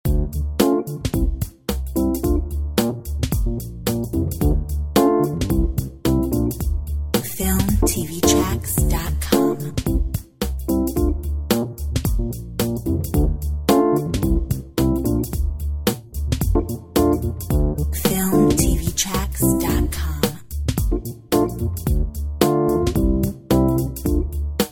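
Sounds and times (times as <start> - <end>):
jazz music: 0.0 - 24.6.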